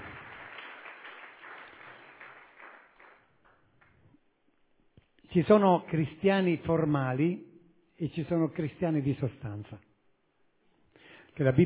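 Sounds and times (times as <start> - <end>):
audience applause: 0.0 - 4.0
speech: 5.3 - 9.9, 11.4 - 11.6.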